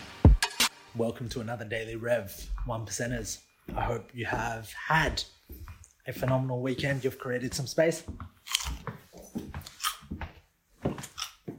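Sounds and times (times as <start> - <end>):
speech: 1.0 - 8.6
chewing a crunchy raw carrot: 8.4 - 10.2, 11.0 - 11.5.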